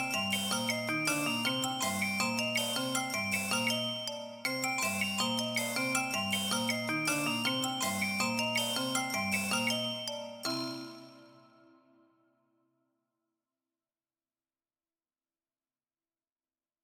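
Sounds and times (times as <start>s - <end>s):
perpetual percussion: 0.0s - 11.6s.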